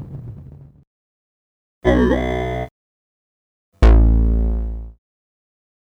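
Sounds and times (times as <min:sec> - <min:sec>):
Moog Modular synthesizer: 0:01.9 - 0:02.7, 0:03.9 - 0:04.9.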